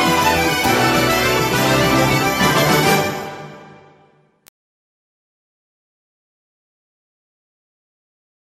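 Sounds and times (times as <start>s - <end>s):
Celtic music: 0.0s - 4.4s.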